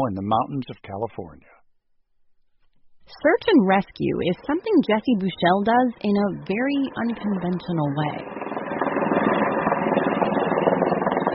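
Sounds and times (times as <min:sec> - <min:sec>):
speech: 0:00.0 - 0:01.6, 0:03.1 - 0:08.4
helicopter engine roar: 0:04.2 - 0:11.3.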